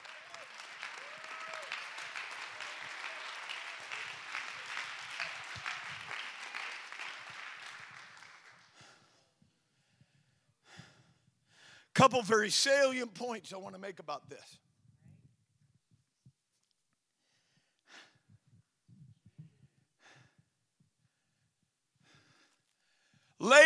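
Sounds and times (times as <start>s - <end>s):
audience clapping: 0.0s - 9.0s, 23.4s - 23.6s
speech: 12.0s - 14.7s.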